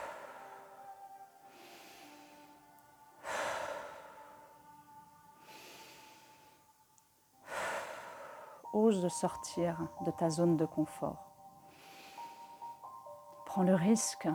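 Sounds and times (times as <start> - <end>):
slow deep breathing during a guided breathing exercise: 0.0 - 8.8, 11.4 - 13.4
faint sustained tones: 0.0 - 14.3
speech: 8.8 - 11.3, 13.6 - 14.3.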